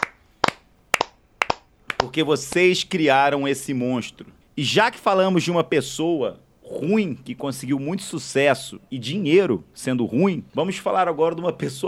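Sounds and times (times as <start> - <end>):
hands clapping: 0.0 - 2.6
speech: 2.0 - 11.8.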